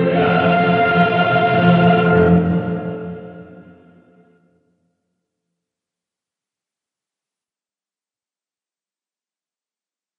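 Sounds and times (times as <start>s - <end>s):
choir singing: 0.0s - 4.2s.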